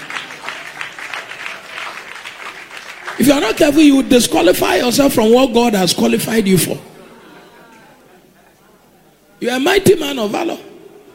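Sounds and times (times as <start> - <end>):
audience clapping: 0.0 - 4.0
speech: 3.2 - 6.9, 9.5 - 10.7.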